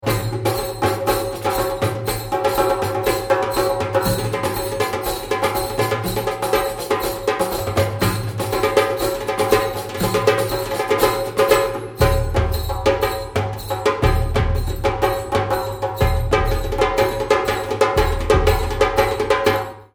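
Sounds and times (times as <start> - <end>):
medieval drum music: 0.0 - 19.9.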